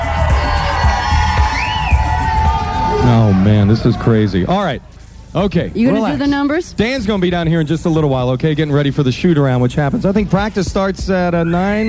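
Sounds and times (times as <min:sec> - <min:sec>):
crowd applauding and cheering: 0:00.0 - 0:04.8
speech: 0:03.4 - 0:11.8.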